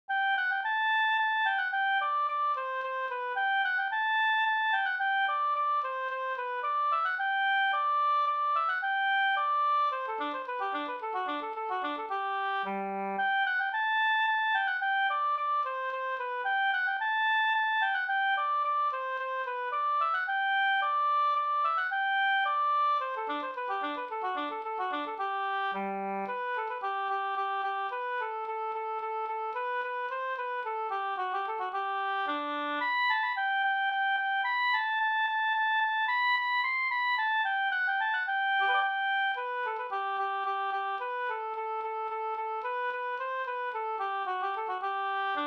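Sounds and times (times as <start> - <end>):
Swedish slängpolska folk dance tune in G major: 0.1 - 45.4.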